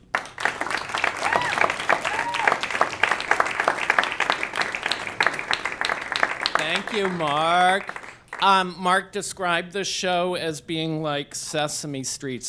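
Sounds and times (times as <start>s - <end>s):
audience applause: 0.0s - 8.5s
faint voices and cheers: 1.2s - 2.7s
speech: 6.8s - 12.4s.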